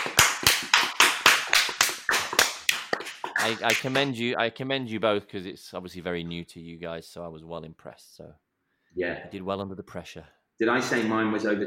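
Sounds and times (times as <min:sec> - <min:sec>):
small group clapping: 0:00.0 - 0:04.1
speech: 0:03.4 - 0:08.4, 0:09.0 - 0:11.6.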